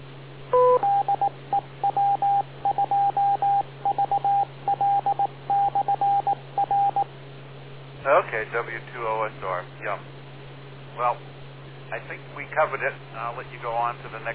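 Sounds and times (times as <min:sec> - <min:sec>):
low hum on a radio channel: 0:00.0 - 0:14.3
radio net two-tone chirp: 0:00.5 - 0:07.1
radio net short mid-pitched beeps: 0:00.6 - 0:07.0
speech: 0:08.4 - 0:10.2, 0:11.0 - 0:11.3, 0:11.9 - 0:14.3.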